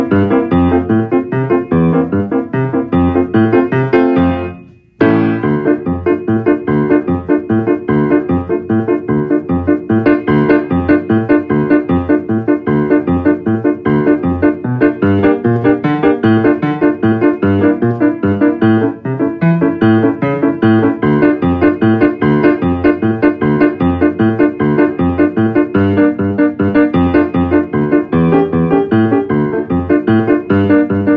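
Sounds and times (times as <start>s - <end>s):
fandango piano accompaniment at 152 bpm: 0.0s - 31.1s.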